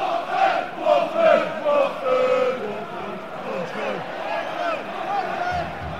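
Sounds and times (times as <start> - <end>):
football crowd chanting in a stadium: 0.0 - 5.9.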